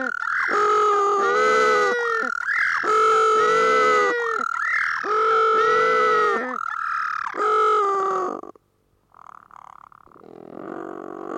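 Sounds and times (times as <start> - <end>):
northern little penguin braying: 0.0 - 8.5.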